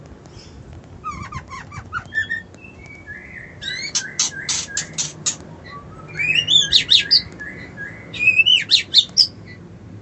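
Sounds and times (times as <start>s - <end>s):
white-eye singing: 2.1s - 9.4s.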